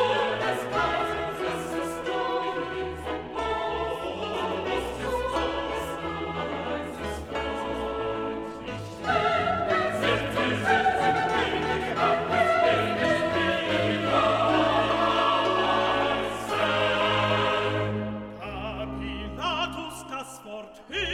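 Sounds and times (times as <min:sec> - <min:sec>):
alto voices singing: 0:00.0 - 0:21.1.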